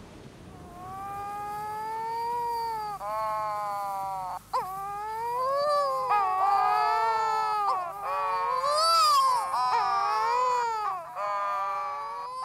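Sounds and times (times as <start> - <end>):
wedge-tailed shearwaters moaning courtship calls: 0.5 - 12.4.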